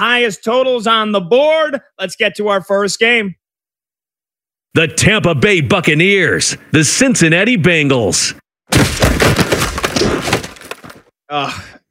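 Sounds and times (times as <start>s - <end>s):
speech: 0.0s - 3.4s, 4.7s - 9.4s, 11.3s - 11.8s
football shoulder pads crunching together: 8.7s - 11.1s.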